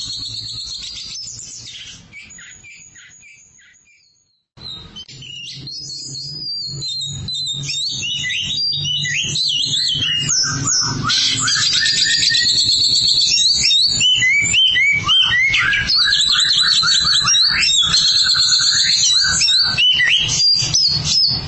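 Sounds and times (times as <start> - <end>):
Oriental magpie-robin song: 0.0 - 21.4.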